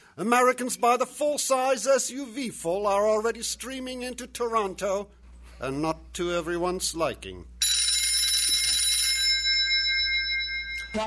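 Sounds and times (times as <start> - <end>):
speech: 0.2 - 7.6
old-style telephone bell ringing: 7.6 - 11.0.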